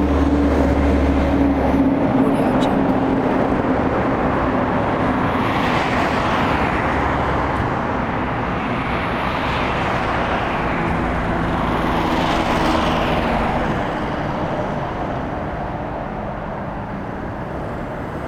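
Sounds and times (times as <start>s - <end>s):
motorway traffic: 0.0s - 18.2s.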